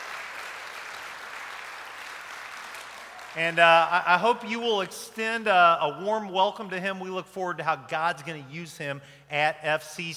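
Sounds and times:
church congregation applauding to welcome a newcomer: 0.0 - 4.4
speech: 3.4 - 10.1.

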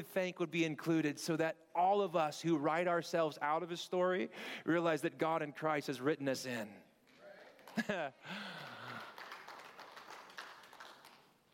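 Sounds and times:
speech: 0.0 - 6.8, 7.7 - 8.7
light scattered golf clap from small audience: 7.1 - 11.5
laughter: 7.6 - 9.2.

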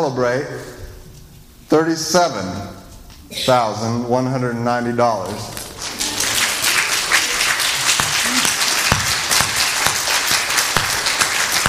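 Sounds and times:
speech: 0.0 - 0.8, 1.7 - 5.6
audience applause: 5.6 - 11.6.

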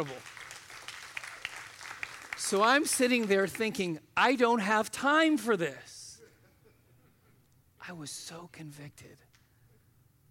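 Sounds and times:
speech: 0.0 - 0.3, 2.5 - 5.9, 7.9 - 9.3
audience applause: 0.0 - 3.8.

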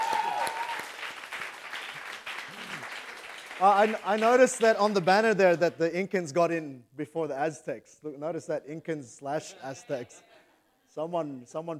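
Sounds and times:
round of applause: 0.0 - 5.2
speech: 3.6 - 10.3, 10.9 - 11.7.

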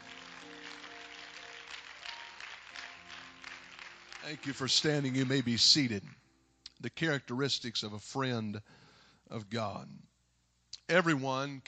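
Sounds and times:
audience clapping: 0.0 - 6.2
speech: 4.2 - 6.2, 6.8 - 10.1, 10.9 - 11.6.

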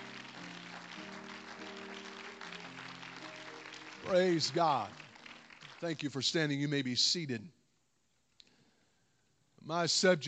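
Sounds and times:
audience clapping: 0.0 - 6.8
speech: 4.1 - 5.0, 5.8 - 7.6, 9.7 - 10.2.

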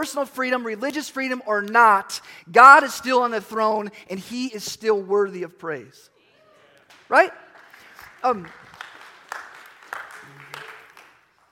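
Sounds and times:
speech: 0.0 - 6.1, 7.1 - 7.4, 8.2 - 8.6
slow clap from audience: 6.7 - 11.5.

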